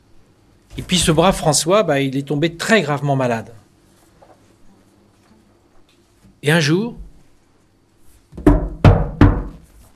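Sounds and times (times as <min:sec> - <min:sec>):
speech: 0:00.8 - 0:03.6, 0:06.4 - 0:07.0
knocking on a door: 0:08.3 - 0:09.6.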